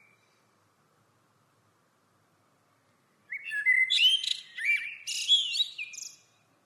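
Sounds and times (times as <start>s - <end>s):
common blackbird song: 3.2s - 6.6s.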